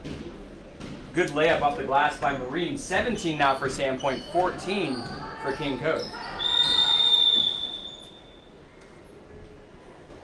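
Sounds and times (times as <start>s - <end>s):
speech: 1.2s - 6.3s
referee's whistle at basketball game: 5.5s - 8.6s.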